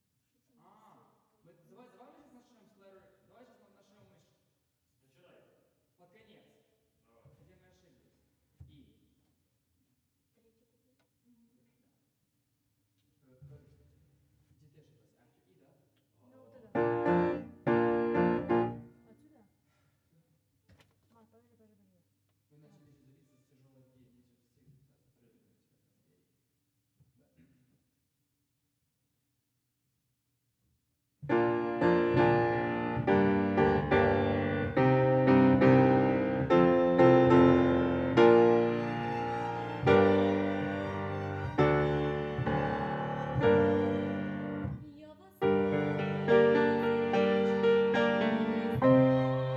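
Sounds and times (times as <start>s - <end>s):
piano: 16.7s - 19.0s, 31.3s - 49.5s.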